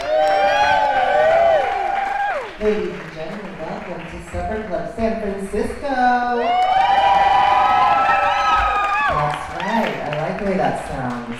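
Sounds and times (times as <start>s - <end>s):
San Francisco supper club audience whooping and cheering for performers: 0.0s - 2.7s, 6.3s - 10.3s
audience applause: 0.0s - 5.4s, 6.4s - 11.3s
speech: 2.6s - 3.0s, 3.9s - 6.5s.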